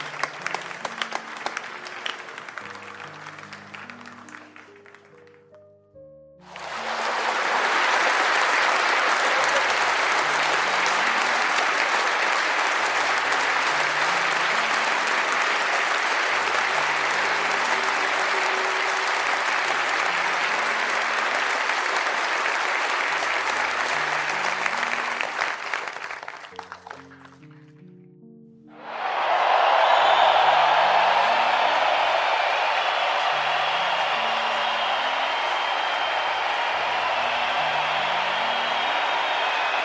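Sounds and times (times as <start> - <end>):
human crowds: 0.0 - 5.1, 6.4 - 27.0, 28.7 - 39.8
laughter: 6.6 - 15.6.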